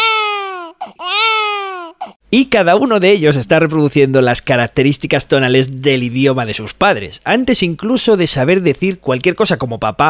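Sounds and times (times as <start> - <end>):
German baby crying with falling pitch: 0.0 - 2.2
speech: 2.3 - 10.0.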